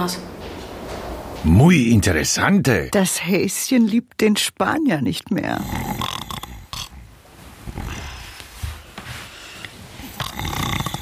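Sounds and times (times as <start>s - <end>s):
speech: 0.0s - 0.4s, 1.4s - 6.0s
loud snoring: 5.6s - 8.2s, 10.0s - 11.0s.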